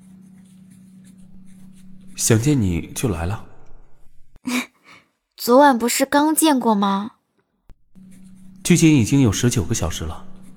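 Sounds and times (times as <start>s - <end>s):
pen writing on paper: 0.0s - 3.0s, 8.0s - 10.5s
steady low hum: 0.0s - 4.4s, 7.7s - 10.5s
speech: 2.2s - 3.5s, 5.5s - 7.2s, 8.7s - 10.3s.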